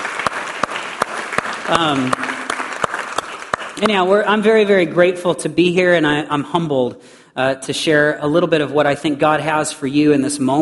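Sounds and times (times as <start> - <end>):
audience applauding: 0.0 - 4.3
speech: 1.7 - 2.3, 3.8 - 10.6.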